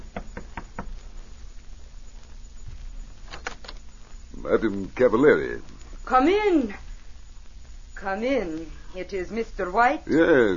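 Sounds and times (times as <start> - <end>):
knocking on a door: 0.1 - 1.0
speech: 4.4 - 6.8, 8.0 - 10.5.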